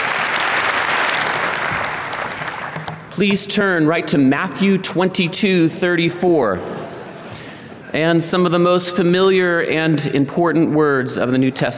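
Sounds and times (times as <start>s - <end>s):
audience applauding to welcome a speaker to the morning service: 0.0s - 3.0s
speech: 3.2s - 6.8s, 7.9s - 11.7s.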